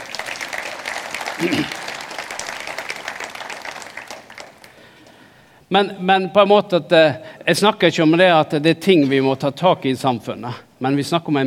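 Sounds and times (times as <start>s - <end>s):
audience applause: 0.0s - 5.3s
speech: 1.4s - 1.8s, 5.7s - 11.4s.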